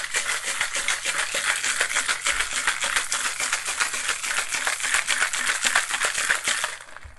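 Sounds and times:
cocktail shaker shaken with ice: 0.0 - 7.1.

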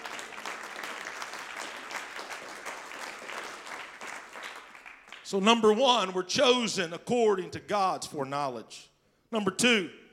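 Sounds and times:
audience clapping hands: 0.0 - 5.6
speech: 5.3 - 10.0.

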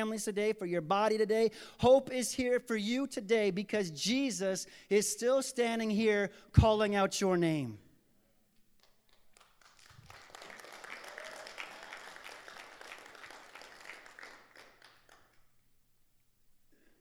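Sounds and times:
speech: 0.0 - 7.8
audience applause: 9.1 - 15.4.

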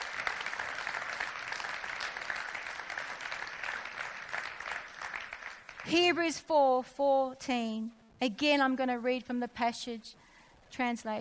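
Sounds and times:
audience applause: 0.0 - 5.9
speech: 5.9 - 11.1.

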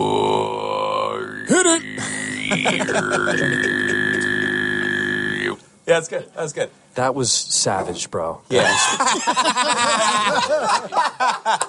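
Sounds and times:
person throat singing a rhythmic beat: 0.0 - 5.6
laughter: 2.0 - 4.3, 8.6 - 11.6
speech: 2.6 - 4.0, 5.9 - 11.6.

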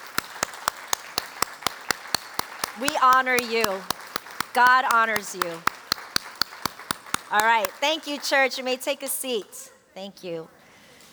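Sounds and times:
audience clapping: 0.0 - 8.7
speech: 2.8 - 5.8, 7.3 - 10.6.

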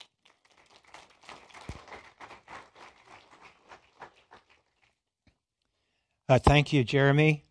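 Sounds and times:
audience applause welcoming a speaker: 0.0 - 5.0
speech: 6.3 - 7.4.

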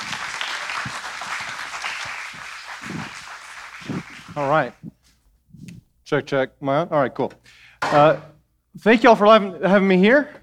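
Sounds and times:
crowd applauding to welcome a speaker to the stage: 0.0 - 5.0
speech: 4.4 - 4.9, 6.1 - 10.4.

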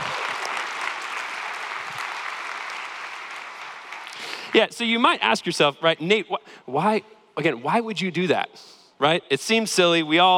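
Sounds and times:
audience applause: 0.0 - 4.5
speech: 4.5 - 10.3.

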